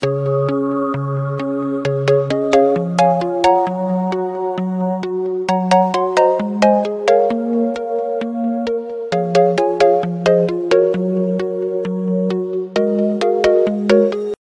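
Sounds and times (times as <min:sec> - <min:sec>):
electro ringtone: 0:00.0 - 0:14.4.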